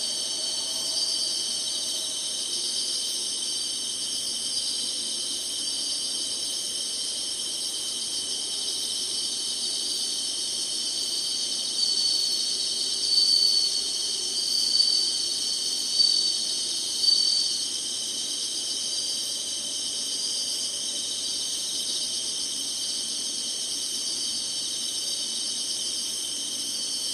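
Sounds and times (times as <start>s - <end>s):
insects buzzing: 0.0s - 27.1s.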